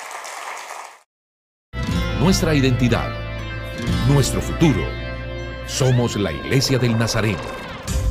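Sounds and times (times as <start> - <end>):
audience applause: 0.0 - 1.0
speech: 2.2 - 3.2, 3.8 - 5.0, 5.7 - 8.0.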